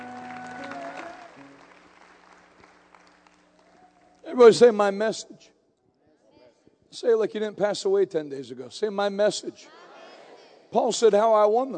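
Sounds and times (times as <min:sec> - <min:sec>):
audience clapping: 0:00.0 - 0:04.2
speech: 0:04.3 - 0:05.6, 0:06.9 - 0:09.8, 0:10.7 - 0:11.7.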